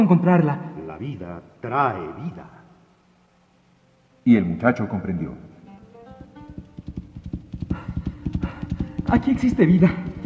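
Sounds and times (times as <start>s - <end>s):
speech: 0.0s - 2.6s, 4.2s - 5.5s, 9.1s - 10.1s
horse hooves clip-clopping: 6.2s - 10.2s.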